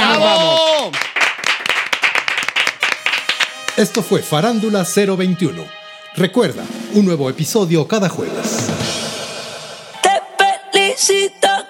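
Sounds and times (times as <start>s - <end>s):
falling vocal whoop: 0.0s - 1.0s
applause from a small group: 0.6s - 4.2s
speech: 3.8s - 8.7s, 11.0s - 11.6s.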